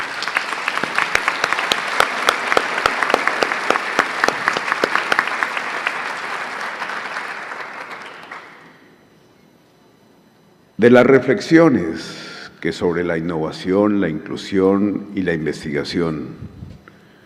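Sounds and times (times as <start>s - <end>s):
audience applause: 0.0s - 8.7s
speech: 10.8s - 16.6s.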